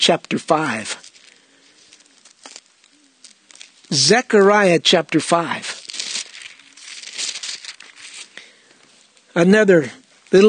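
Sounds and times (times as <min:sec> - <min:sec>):
speech: 0:00.0 - 0:01.1, 0:03.9 - 0:05.8, 0:09.4 - 0:10.4
book pages flipping: 0:00.2 - 0:04.0, 0:05.0 - 0:09.2.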